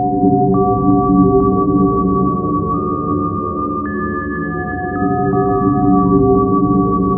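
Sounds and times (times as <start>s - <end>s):
KORG WAVESTATION synthesizer: 0.0s - 7.1s.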